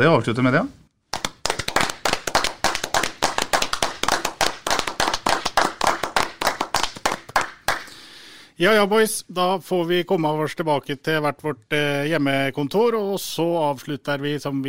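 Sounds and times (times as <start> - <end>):
speech: 0.0 - 0.8, 8.6 - 14.6
applause: 1.1 - 8.0.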